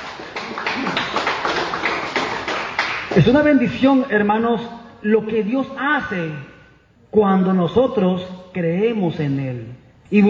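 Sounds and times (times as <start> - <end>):
crowd applauding: 0.0 - 3.4
speech: 3.2 - 6.5, 7.1 - 10.2.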